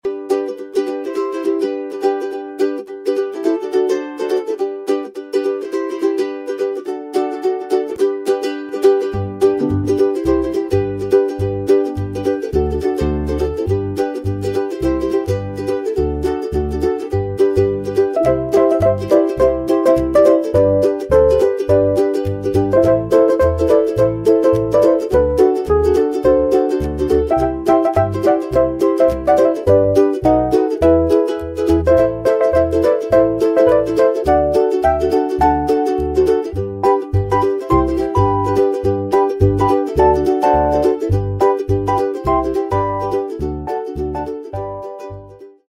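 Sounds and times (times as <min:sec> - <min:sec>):
ukulele: 0:00.0 - 0:45.6.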